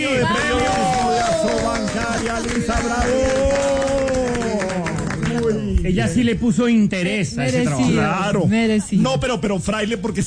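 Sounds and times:
applause: 0.3 - 5.7
speech: 2.0 - 3.7, 5.8 - 10.2.

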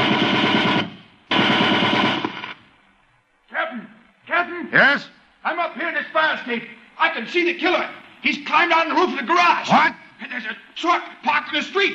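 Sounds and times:
machine gun fire: 0.0 - 2.7
speech: 4.7 - 5.2, 6.0 - 11.9.

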